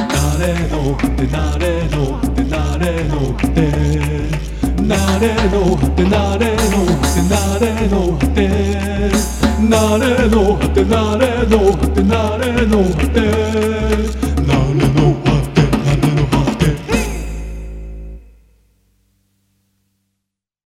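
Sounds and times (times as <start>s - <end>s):
Latin jingle: 0.1s - 18.5s.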